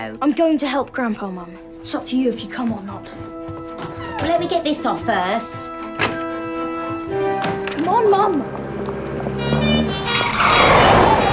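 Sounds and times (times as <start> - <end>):
speech: 0.0 - 5.8, 8.0 - 9.0
bright green car pulling up: 6.2 - 11.3.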